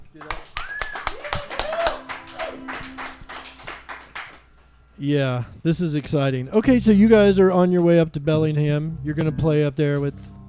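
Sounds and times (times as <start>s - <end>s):
crowd of people clapping: 0.0s - 4.7s
speech: 5.0s - 10.3s.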